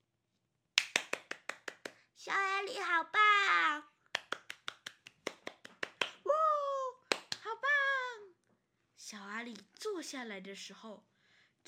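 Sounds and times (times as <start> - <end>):
children and adults clapping: 0.8 - 2.0, 4.1 - 6.2, 7.1 - 7.5
speech: 2.2 - 4.0, 9.1 - 11.6.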